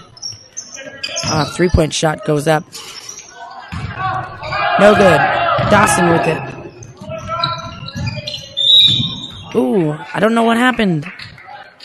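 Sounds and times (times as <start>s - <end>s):
speech: 0.8s - 3.0s, 4.8s - 6.5s, 9.6s - 11.2s
referee's whistle: 7.3s - 9.5s.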